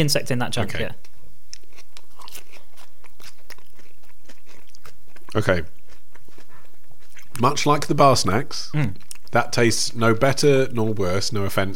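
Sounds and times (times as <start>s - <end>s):
speech: 0.0s - 1.1s, 5.3s - 5.8s, 7.4s - 11.7s
someone biting into and chewing a homemade onion bhaji with an insect: 1.0s - 7.9s.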